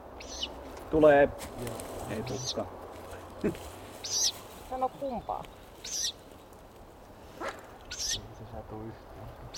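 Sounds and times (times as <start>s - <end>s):
Ural owl hissing calls: 0.2s - 0.6s, 4.0s - 4.4s, 5.8s - 6.2s, 7.2s - 8.2s
speech: 0.9s - 2.8s, 3.4s - 6.0s, 8.1s - 9.5s.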